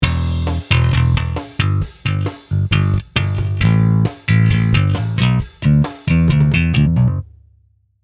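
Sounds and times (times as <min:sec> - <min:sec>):
bass: 0:00.0 - 0:07.4.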